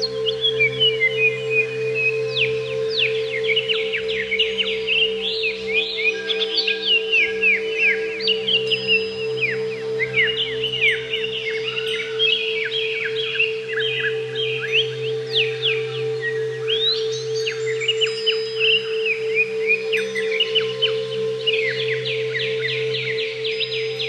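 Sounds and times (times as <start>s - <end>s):
greater green leafbird song: 0.0s - 24.0s.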